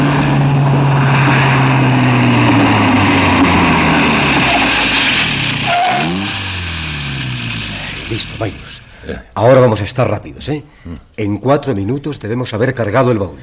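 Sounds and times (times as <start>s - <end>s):
car pulling up and stopping: 0.0s - 9.9s
speech: 9.4s - 13.4s.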